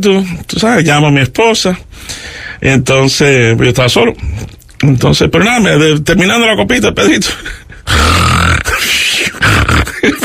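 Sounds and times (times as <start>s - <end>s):
speech: 0.0s - 10.2s
voice imitating snoring: 7.9s - 10.1s.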